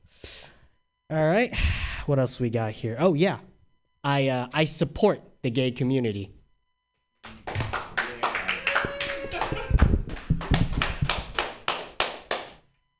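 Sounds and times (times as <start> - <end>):
speech: 1.1 - 6.4
applause: 7.2 - 12.6.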